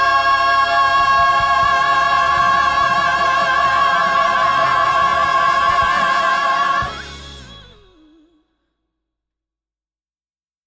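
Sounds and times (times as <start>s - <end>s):
soprano singing: 0.0s - 8.4s.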